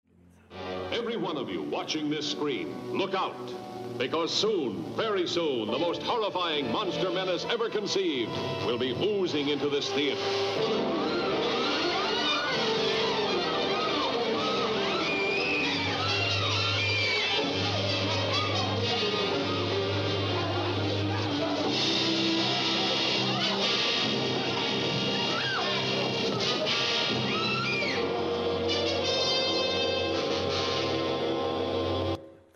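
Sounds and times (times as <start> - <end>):
speech: 1.0 - 11.0
crowd of people screaming: 10.2 - 32.2.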